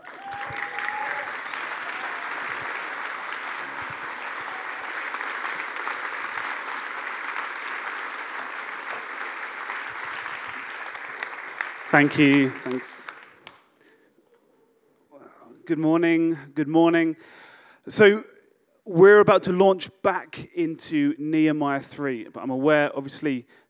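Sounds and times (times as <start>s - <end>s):
standing church congregation applauding to welcome a preacher: 0.0s - 13.7s
speech: 11.9s - 13.0s, 15.7s - 18.3s, 18.9s - 23.6s.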